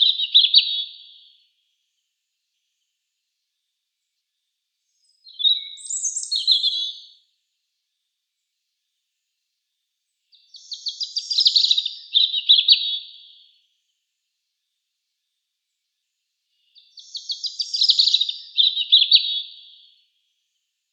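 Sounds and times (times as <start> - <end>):
European robin singing: 0.0 - 1.4, 4.9 - 7.2, 10.3 - 13.6, 16.5 - 20.0.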